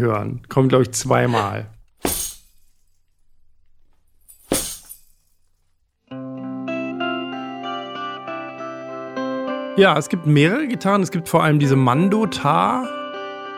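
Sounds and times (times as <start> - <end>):
speech: 0.0 - 2.2, 9.8 - 13.0
rattling chains made by slamming box down: 1.8 - 5.9.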